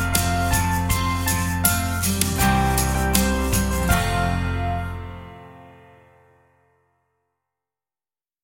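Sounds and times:
instrumental version of a nursery rhyme: 0:00.0 - 0:06.6.

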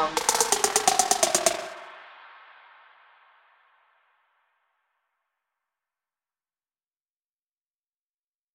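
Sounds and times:
hip trap beat: 0:00.2 - 0:01.8.

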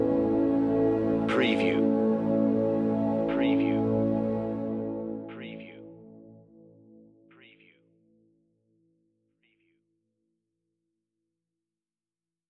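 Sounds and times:
strings: 0:00.0 - 0:06.4.

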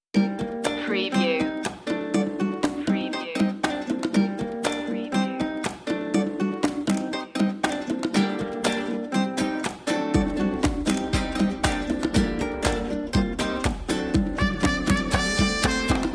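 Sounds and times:
music loop: 0:00.4 - 0:16.1.

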